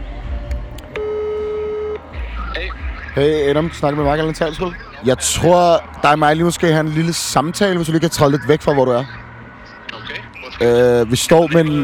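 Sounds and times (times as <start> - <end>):
murmur: 0.0 - 11.8
phone call ring tone over a speakerphone: 1.0 - 2.6
speech: 3.2 - 9.2, 10.6 - 11.8.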